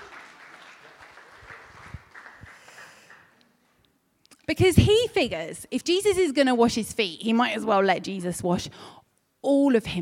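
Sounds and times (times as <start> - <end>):
audience applause: 0.0 - 3.4
speech: 4.5 - 9.9.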